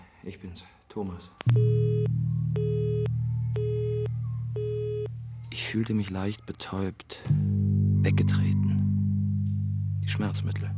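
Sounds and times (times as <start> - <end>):
speech: 0.2 - 2.7, 5.7 - 8.8, 10.1 - 10.7
telephone line tone beeps from a broken phone: 1.5 - 5.1.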